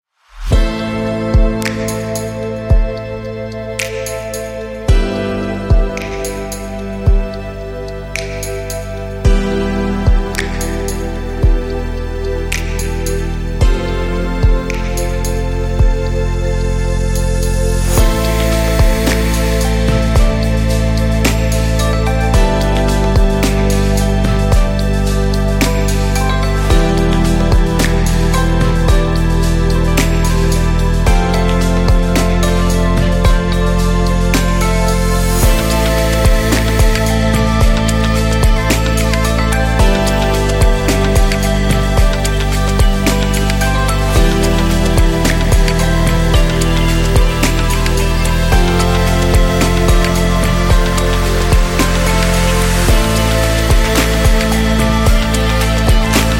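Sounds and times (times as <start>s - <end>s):
inspiring ambient electronic music: 0.2s - 56.3s.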